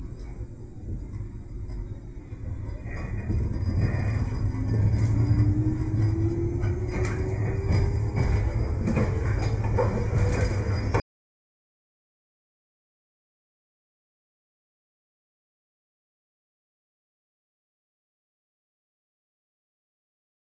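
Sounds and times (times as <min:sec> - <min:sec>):
train motor: 0:00.0 - 0:11.0.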